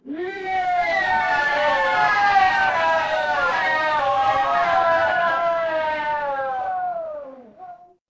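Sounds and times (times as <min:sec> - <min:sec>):
crowd cheering: 0:00.3 - 0:07.6.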